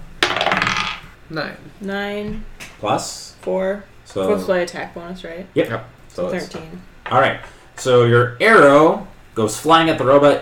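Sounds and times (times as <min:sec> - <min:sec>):
twenty-sided die clattering and rolling on a table: 0:00.0 - 0:01.1
speech: 0:01.3 - 0:10.4.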